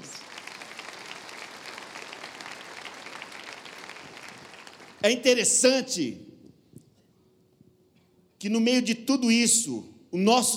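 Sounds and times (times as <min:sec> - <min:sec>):
audience applauding: 0:00.0 - 0:05.0
speech: 0:05.0 - 0:06.3, 0:08.4 - 0:10.5.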